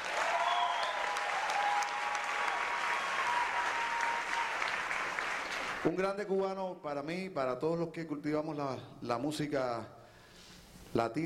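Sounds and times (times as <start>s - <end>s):
audience applause: 0.0s - 5.9s
faint whistles: 0.4s - 1.1s
speech: 5.8s - 10.0s, 10.9s - 11.2s.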